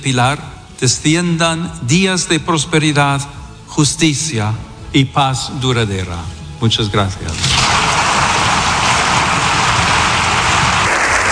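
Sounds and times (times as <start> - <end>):
speech: 0.0 - 7.8
long audience applause after speech: 7.6 - 11.3.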